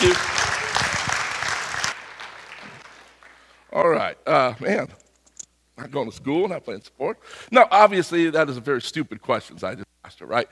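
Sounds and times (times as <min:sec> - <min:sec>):
audience applause: 0:00.0 - 0:03.6
speech: 0:03.8 - 0:05.0, 0:05.8 - 0:10.5.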